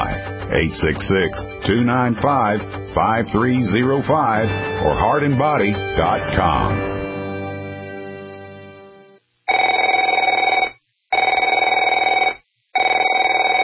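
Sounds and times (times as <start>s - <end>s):
speech: 0.5s - 7.0s
telephone ringing: 9.5s - 13.6s.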